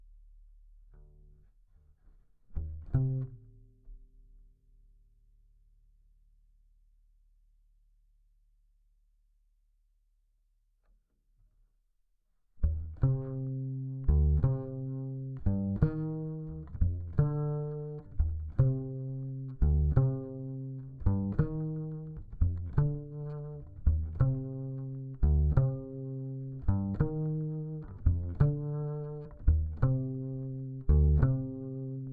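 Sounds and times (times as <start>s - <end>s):
bass guitar recorded by direct input: 0.0s - 4.5s, 12.6s - 32.1s.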